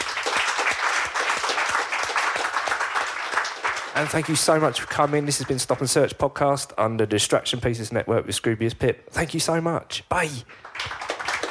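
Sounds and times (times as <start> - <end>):
audience applause: 0.0 - 6.1, 10.5 - 11.4
speech: 4.0 - 10.7.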